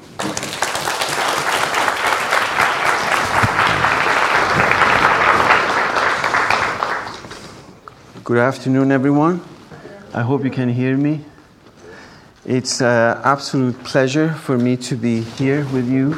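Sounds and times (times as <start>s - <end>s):
audience applause welcoming a professor to the stage: 0.0s - 7.8s
speech: 8.3s - 9.5s, 10.1s - 11.3s, 12.4s - 16.1s.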